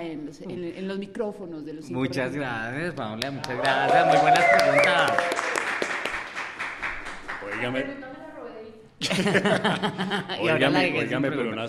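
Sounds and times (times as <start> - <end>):
speech: 0.1 - 5.4, 7.5 - 8.2, 9.0 - 11.6
audience applause: 3.4 - 7.8
laughter: 9.0 - 10.9.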